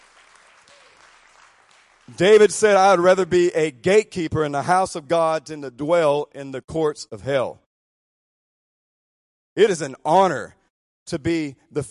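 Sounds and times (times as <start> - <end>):
sustained applause from a large crowd: 0.0 - 2.5
speech: 2.1 - 7.6, 9.6 - 11.9.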